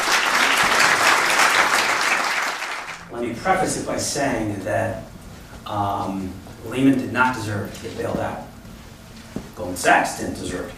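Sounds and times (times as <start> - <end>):
audience applause welcoming a speaker at a talk: 0.0 - 3.0
speech: 3.2 - 5.1, 5.7 - 8.5, 9.6 - 10.7.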